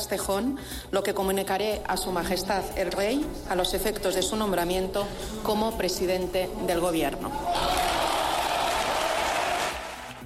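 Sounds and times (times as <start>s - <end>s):
speech: 0.0s - 7.8s
parliament members applauding: 7.5s - 10.2s.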